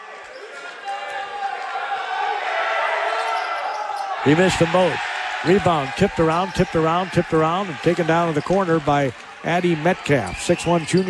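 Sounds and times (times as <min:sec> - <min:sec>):
fans across the gym heckling a player at a men's college basketball game: 0:00.0 - 0:11.0
speech: 0:04.2 - 0:11.0.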